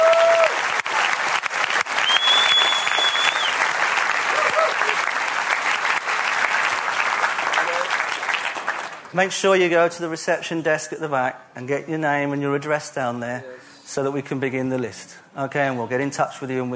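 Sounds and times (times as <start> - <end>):
audience applause: 0.0 - 9.1
speech: 9.2 - 16.7.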